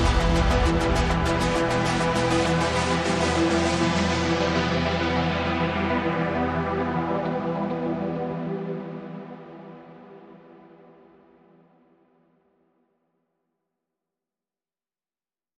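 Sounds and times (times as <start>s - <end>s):
guitar without EBow: 0.0s - 10.6s.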